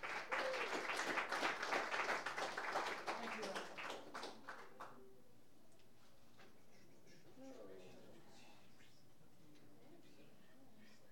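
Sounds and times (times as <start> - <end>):
audience applause welcoming a singer-songwriter guest: 0.0 - 4.8.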